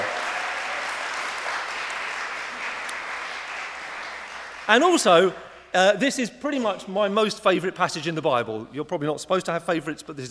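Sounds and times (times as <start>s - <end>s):
audience applause: 0.0s - 5.0s
speech: 4.7s - 10.2s.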